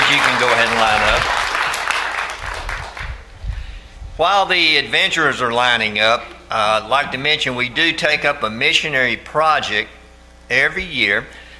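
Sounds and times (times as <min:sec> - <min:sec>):
crowd applauding: 0:00.0 - 0:03.2
speech: 0:00.1 - 0:01.4, 0:04.2 - 0:11.4.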